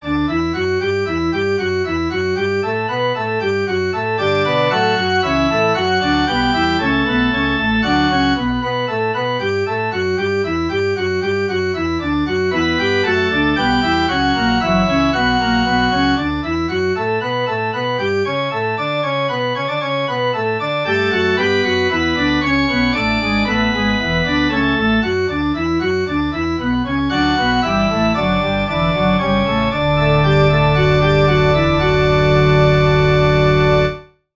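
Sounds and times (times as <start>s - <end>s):
musical prelude: 0.0s - 34.2s.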